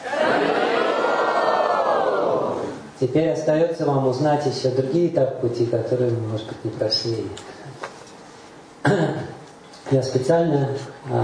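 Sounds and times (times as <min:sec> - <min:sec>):
audience shouting a chant: 0:00.0 - 0:02.9
speech: 0:03.0 - 0:07.6, 0:08.8 - 0:09.3, 0:09.9 - 0:11.2.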